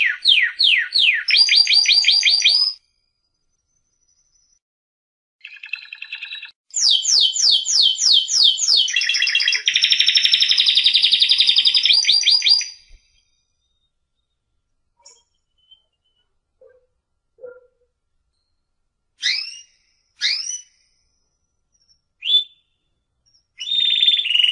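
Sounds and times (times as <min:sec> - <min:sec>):
competition first-place winner canary singing trills: 0:00.0 - 0:02.8, 0:05.4 - 0:14.3, 0:15.0 - 0:16.8, 0:19.2 - 0:24.5.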